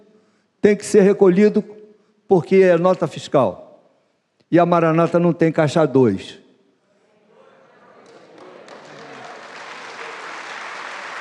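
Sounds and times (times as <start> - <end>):
speech: 0.6 - 3.6, 4.5 - 6.4
faint murmur of voices: 6.9 - 9.4
audience applause: 8.0 - 11.1.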